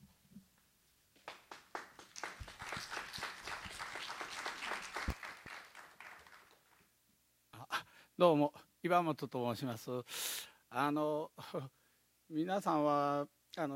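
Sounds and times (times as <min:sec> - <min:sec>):
audience applause: 0:01.2 - 0:06.8
speech: 0:08.2 - 0:10.2, 0:10.8 - 0:13.7.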